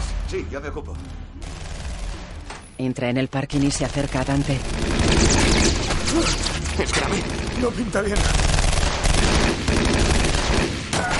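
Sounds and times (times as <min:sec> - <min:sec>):
speech: 0:00.3 - 0:01.6, 0:02.8 - 0:08.6
gunshots: 0:01.4 - 0:02.7, 0:03.5 - 0:11.1.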